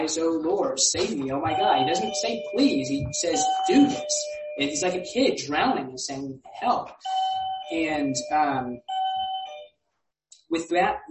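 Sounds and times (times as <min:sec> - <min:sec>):
speech: 0:00.0 - 0:08.9, 0:10.5 - 0:11.0
doorbell ringing with a single electronic chime: 0:01.4 - 0:05.1, 0:07.0 - 0:09.7.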